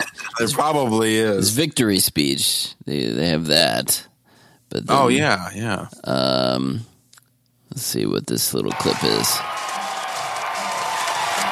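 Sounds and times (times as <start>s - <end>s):
speech: 0.4s - 4.1s, 4.7s - 6.9s, 7.7s - 9.8s
stadium crowd cheering: 8.7s - 11.5s.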